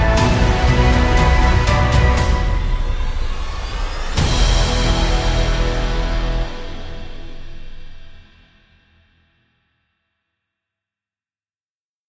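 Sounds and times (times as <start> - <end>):
hybrid sci-fi cinematic technological sound: 0.0 - 8.6.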